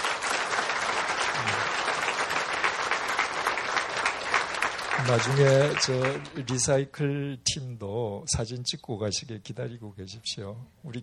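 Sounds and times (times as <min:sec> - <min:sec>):
audience applause: 0:00.0 - 0:06.6
speech: 0:05.0 - 0:11.0.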